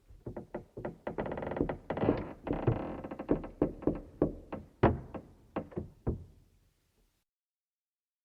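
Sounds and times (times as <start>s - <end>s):
ship deck creaking: 0.2s - 6.4s.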